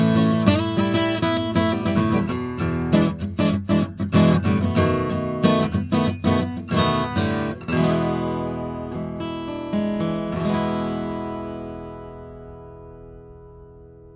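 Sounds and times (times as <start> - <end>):
guitar playing: 0.0 - 14.1.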